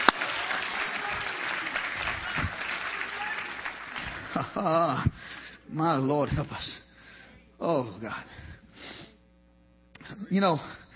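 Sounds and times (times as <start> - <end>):
audience hand clapping in praise: 0.0 - 5.5
speech: 4.4 - 6.8, 7.6 - 8.4, 10.2 - 10.8.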